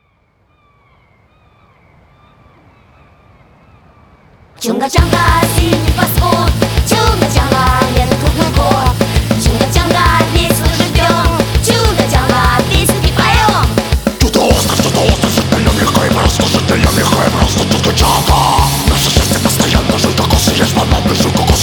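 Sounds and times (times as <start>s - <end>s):
hardcore music: 5.0s - 21.6s.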